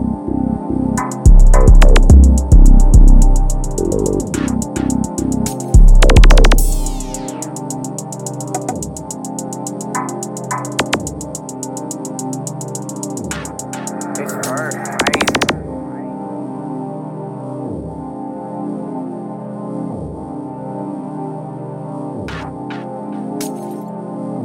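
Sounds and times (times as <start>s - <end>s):
C minor type beat at 107 bpm: 1.0s - 15.8s, 22.3s - 23.8s.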